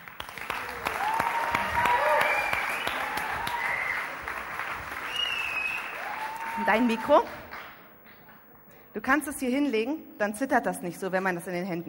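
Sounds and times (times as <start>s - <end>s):
audience applause: 0.0s - 7.8s
people whooping and cheering: 0.5s - 7.3s
speech: 6.6s - 7.4s, 9.0s - 11.8s.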